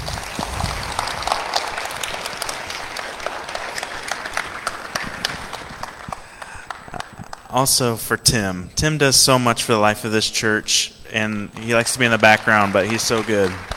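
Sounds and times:
audience round of applause: 0.0 - 7.5, 11.6 - 13.7
speech: 7.6 - 13.7.

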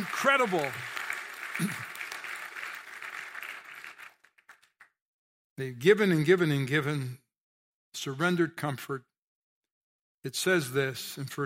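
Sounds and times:
audience applause: 0.0 - 4.9
speech: 0.2 - 0.9, 5.6 - 7.2, 7.9 - 9.1, 10.2 - 11.4.

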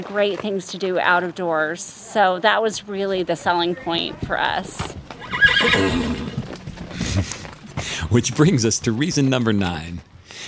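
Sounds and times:
speech: 0.0 - 5.0, 5.6 - 6.2, 8.1 - 10.4
horse neighing: 5.2 - 6.6
horse snorting: 5.2 - 7.7.

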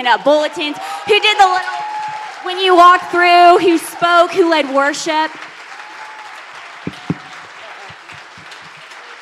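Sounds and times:
speech: 0.0 - 1.8, 2.4 - 5.5
audience applause: 0.2 - 9.1
low thumps: 6.9 - 7.3.

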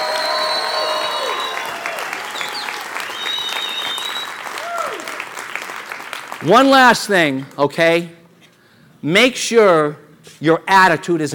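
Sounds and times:
cheers and whistles: 0.0 - 5.2
large audience round of applause: 0.0 - 6.5
speech: 6.4 - 8.2, 9.0 - 11.3.

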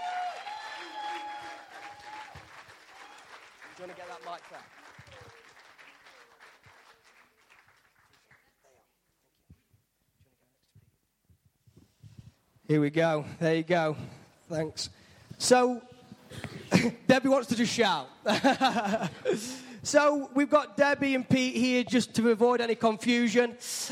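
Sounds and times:
audience applause: 0.0 - 8.6
speech: 3.8 - 4.8, 12.7 - 23.9
laughter: 18.2 - 19.8.

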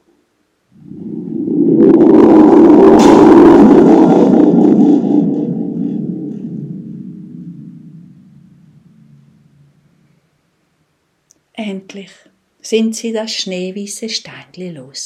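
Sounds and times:
thunder rumbling: 0.7 - 10.4
speech: 12.0 - 15.0.

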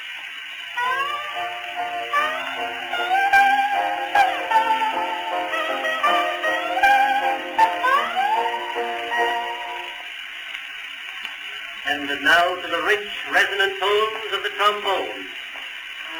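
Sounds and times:
Hawaiian guitars on old recording: 0.8 - 10.0
speech: 12.1 - 15.4.

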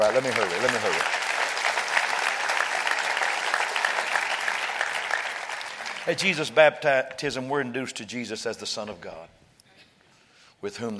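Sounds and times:
speech: 0.0 - 1.3, 6.0 - 9.4, 10.6 - 10.9
audience clapping hands: 0.0 - 6.5.

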